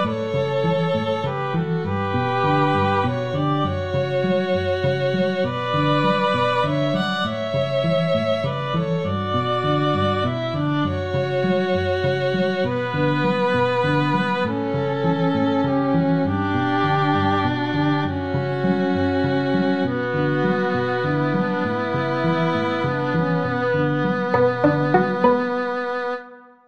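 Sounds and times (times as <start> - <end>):
two violins: 0.0 - 26.4
cello: 0.0 - 26.6.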